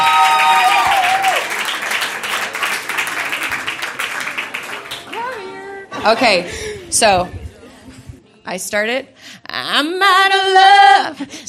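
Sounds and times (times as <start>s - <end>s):
audience cheering and whoops: 0.0s - 1.6s
audience clapping: 0.0s - 5.6s
speech: 6.0s - 7.4s, 8.5s - 11.4s.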